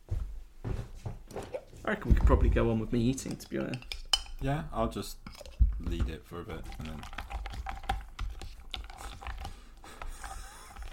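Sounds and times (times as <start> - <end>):
speech: 1.9 - 7.2
spoon mixing yogurt with nuts: 3.2 - 10.9.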